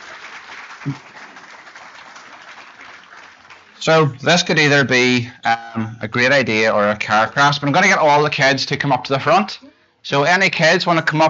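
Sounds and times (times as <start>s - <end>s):
audience applause: 0.0s - 3.8s
speech: 0.8s - 1.2s, 3.8s - 11.2s.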